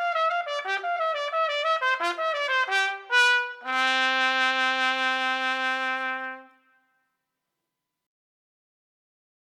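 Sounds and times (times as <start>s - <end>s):
trumpet playing baroque suite movement: 0.0s - 6.9s.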